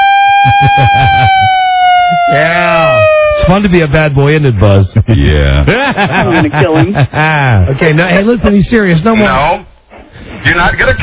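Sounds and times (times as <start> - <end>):
high electronic siren tone: 0.0 - 4.0
laughter: 0.4 - 1.7, 5.0 - 7.7
speech: 0.7 - 1.2, 3.6 - 9.7, 10.4 - 11.0.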